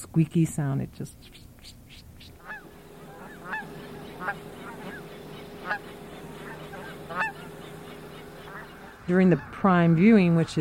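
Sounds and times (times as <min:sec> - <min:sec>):
speech: 0:00.2 - 0:01.8, 0:09.1 - 0:10.6
steady low droning hum: 0:02.2 - 0:10.4
flock of geese honking as they fly in: 0:02.2 - 0:10.6.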